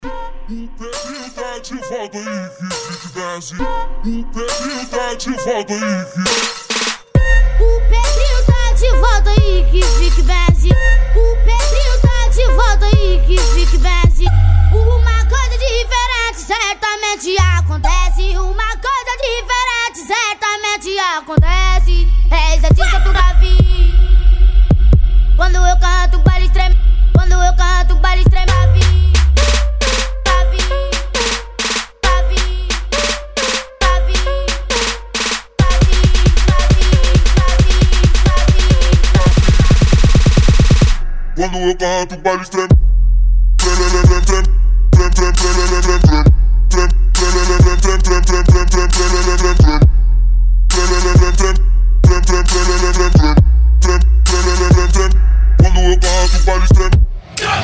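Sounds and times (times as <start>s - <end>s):
trap funk music: 0.0s - 57.6s.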